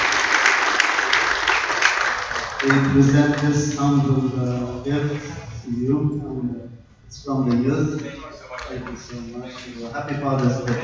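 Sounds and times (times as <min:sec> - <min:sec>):
audience applause at a Father's Day gathering: 0:00.0 - 0:04.0, 0:08.0 - 0:10.8
speech: 0:02.6 - 0:10.8.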